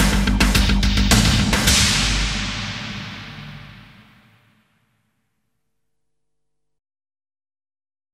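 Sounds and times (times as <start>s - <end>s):
news radio TV music: 0.0s - 4.6s.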